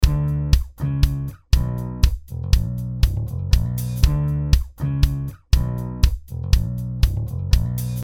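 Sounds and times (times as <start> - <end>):
kick drum: 0.0 - 8.0.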